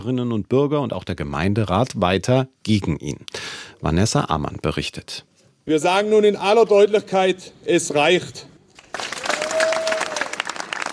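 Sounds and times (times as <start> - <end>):
speech: 0.0 - 8.5
around 250 people clapping and cheering at a protest rally outside Wutach town hall: 8.8 - 10.9.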